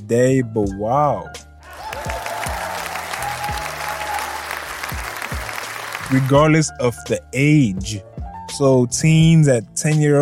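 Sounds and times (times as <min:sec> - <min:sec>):
speech: 0:00.1 - 0:01.5, 0:06.1 - 0:10.2
audience applause: 0:01.6 - 0:06.4.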